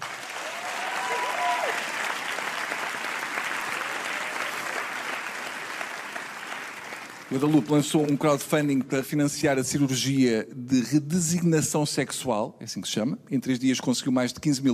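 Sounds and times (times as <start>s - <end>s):
round of applause: 0.0s - 8.0s
speech: 7.3s - 14.7s.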